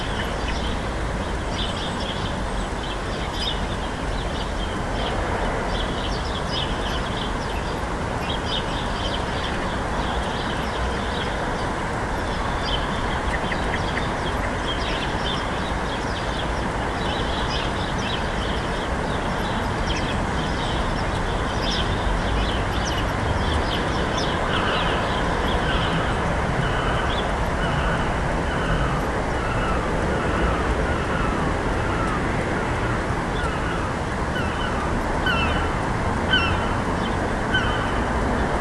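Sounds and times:
urban birdsong at dawn in Swansea UK: 0.0 - 32.2, 33.3 - 38.5.

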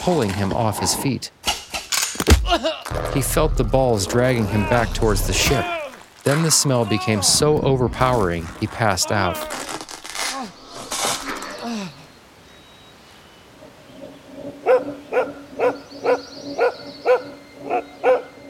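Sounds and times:
speech: 0.0 - 1.5, 2.2 - 9.6
dog barking: 14.6 - 18.3.

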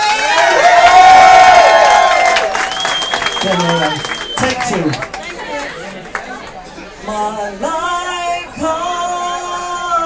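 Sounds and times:
crowd applause: 0.0 - 6.5
speech: 3.5 - 5.1.

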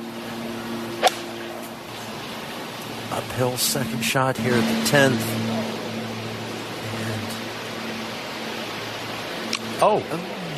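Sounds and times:
faint steady hum: 0.0 - 10.5
golf club snapping across a golfer's knee on the course: 1.0 - 1.3
speech: 3.1 - 5.7, 9.8 - 10.5.

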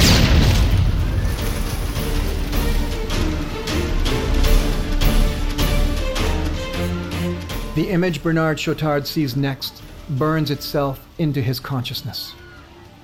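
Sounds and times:
car gas tank explosion: 0.0 - 5.7
sharp crackling bursts: 0.0 - 11.3
speech: 7.8 - 12.4.

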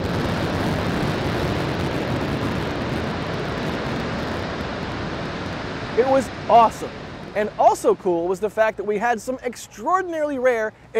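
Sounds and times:
rocket launch pad water deluge spraying: 0.0 - 9.6
speech: 6.0 - 10.9.

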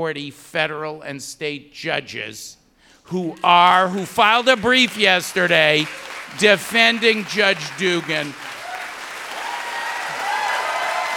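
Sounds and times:
speech: 0.0 - 8.5
audience applause: 3.4 - 11.1.

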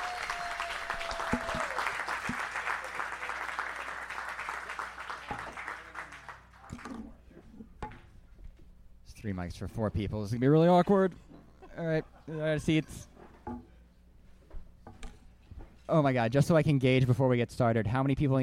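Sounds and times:
audience applause: 0.0 - 6.6
speech: 9.2 - 13.1, 15.9 - 18.4.

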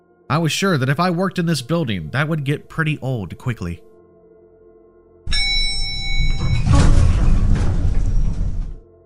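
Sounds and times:
speech: 0.3 - 3.9
brief ringing tone: 5.3 - 6.8
elevator door sliding open: 5.3 - 8.9.

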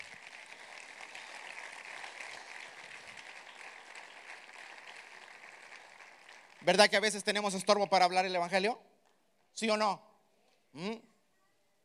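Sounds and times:
audience applause: 0.0 - 7.3
speech: 6.6 - 8.9, 9.6 - 10.1, 10.8 - 11.1.

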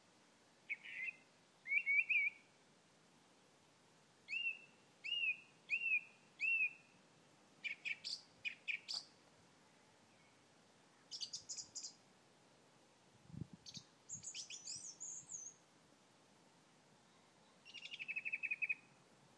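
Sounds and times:
birdsong on a quiet evening: 0.7 - 2.5, 4.3 - 7.0, 7.6 - 9.2, 9.8 - 12.0, 13.6 - 15.6, 17.2 - 19.3.

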